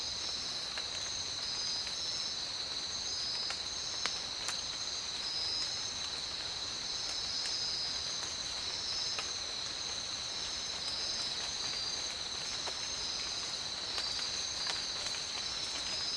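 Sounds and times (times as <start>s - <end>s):
tropical rain: 0.0s - 16.1s.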